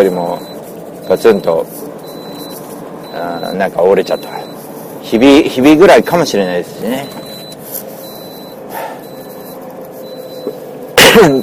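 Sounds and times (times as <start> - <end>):
speech: 0.0 - 1.9, 3.2 - 7.2, 11.2 - 11.4
cough: 11.0 - 11.4.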